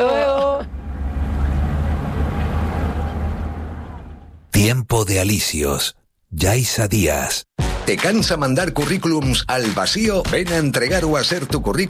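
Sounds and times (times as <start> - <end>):
departing boat engine rumble: 0.0 - 4.5
speech: 4.7 - 11.8.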